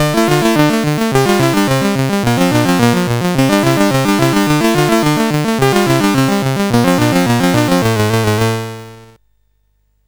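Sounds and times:
SID CSG8580R5 chiptune music: 0:00.0 - 0:09.2.

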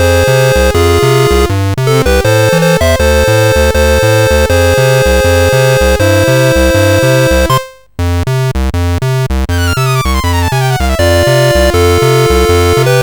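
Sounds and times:
SID CSG8580R5 sound chip music: 0:00.0 - 0:13.0.

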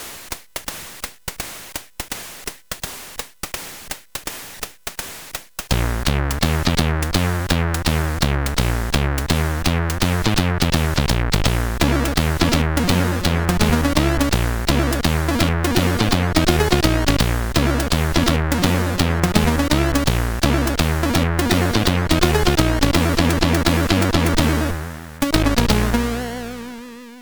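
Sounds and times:
chiptune jazz on CSG8580R5 sound chip: 0:05.7 - 0:27.2.

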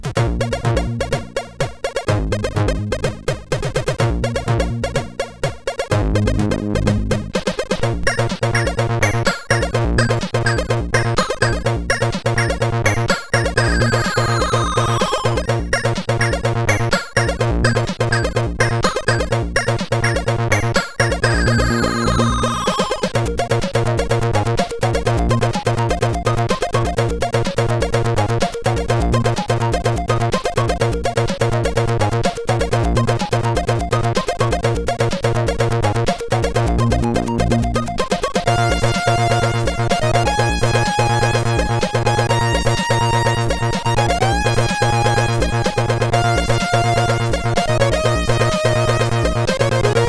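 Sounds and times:
MOS6581R4 SID chip synthesizer sound: 0:00.2 - 0:50.0.

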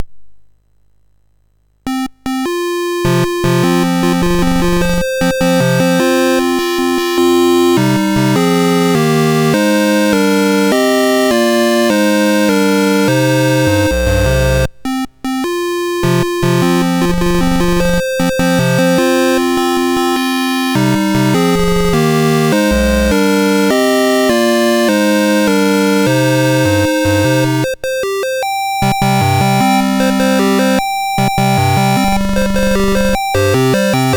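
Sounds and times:
SID MOS6581R4 chiptune music: 0:01.9 - 0:34.1.

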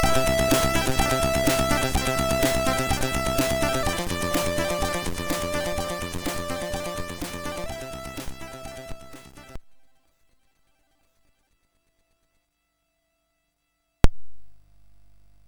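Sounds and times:
MOS6581R3 SID chip high-resolution demo kit: 0:00.0 - 0:09.6.

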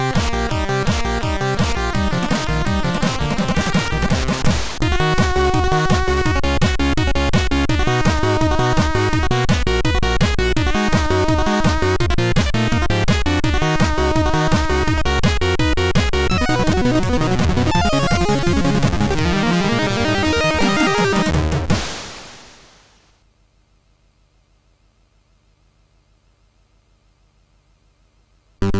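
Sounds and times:
SID MOS6581R3 chiptune remix: 0:00.0 - 0:21.7.

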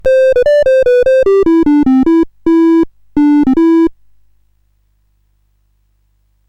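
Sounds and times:
CSG8580R5 sound chip game music: 0:00.0 - 0:03.9.

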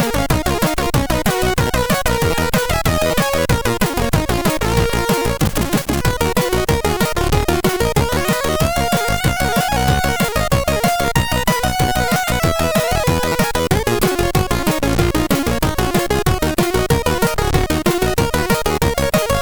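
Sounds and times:
chiptune groove on a MOS6581R3 SID chip: 0:00.0 - 0:19.4.

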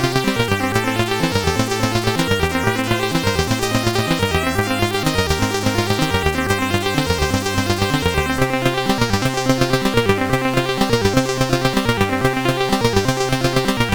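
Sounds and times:
intro music: 0:00.2 - 0:13.9.

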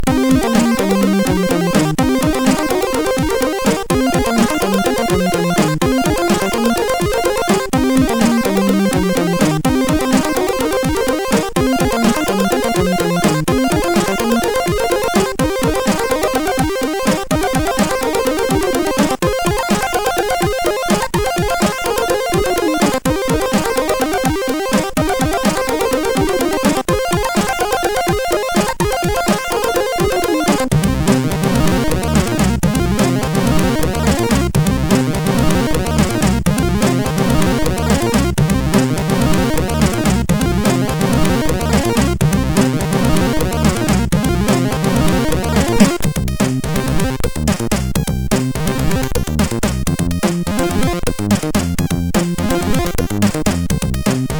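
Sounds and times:
MOS6581R4 SID chip music: 0:00.0 - 0:54.3.

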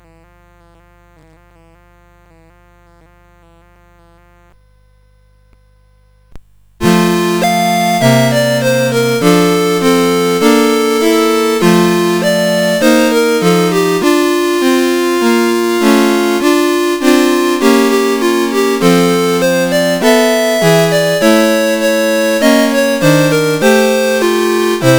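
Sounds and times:
Christmas song: 0:06.8 - 0:24.9.

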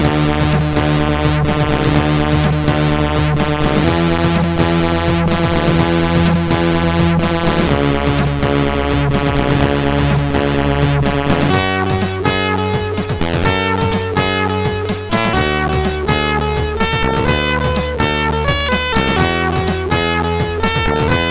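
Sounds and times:
new wave chiptune music on SID CSG8580R5 chip: 0:00.0 - 0:21.2.

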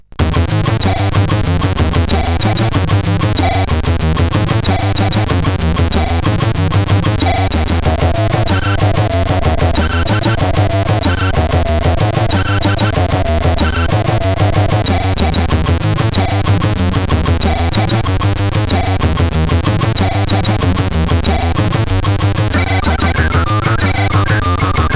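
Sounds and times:
SID CSG8580R5 chip music: 0:00.2 - 0:24.9.

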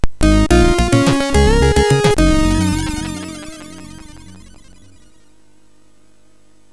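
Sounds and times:
chiptune game music on MOS6581R4 sound chip: 0:00.0 - 0:05.2.

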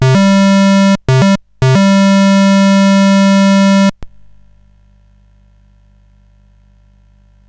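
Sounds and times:
SID chiptune music on CSG8580R5 chip: 0:00.0 - 0:04.0.

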